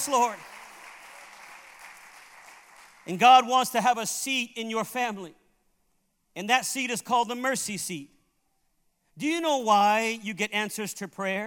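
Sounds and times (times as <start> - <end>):
speech: 0.0 - 0.5, 3.1 - 5.4, 6.4 - 8.2, 9.2 - 11.4
audience clapping hands: 0.0 - 3.4.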